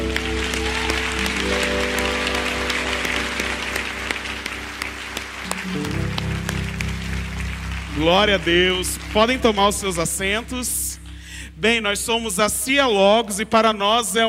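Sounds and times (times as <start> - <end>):
audience clapping: 0.0 - 11.4
sustained organ or keyboard chord: 0.0 - 12.2
speech: 8.0 - 10.8, 11.6 - 14.2.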